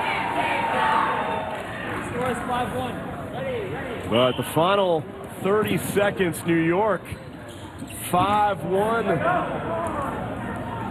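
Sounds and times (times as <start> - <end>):
crowd cheering in arena: 0.0 - 2.4
speech: 2.5 - 9.8.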